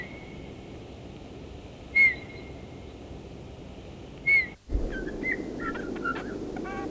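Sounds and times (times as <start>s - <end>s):
faint hiss: 0.8s - 6.8s
bullfinch soft piping whistled dy calls: 4.3s - 6.8s.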